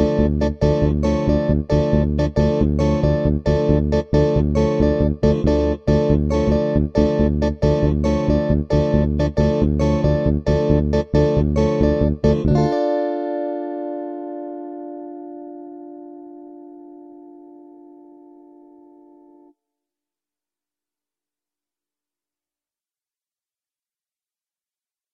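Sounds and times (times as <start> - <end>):
guitar: 0.0 - 19.5.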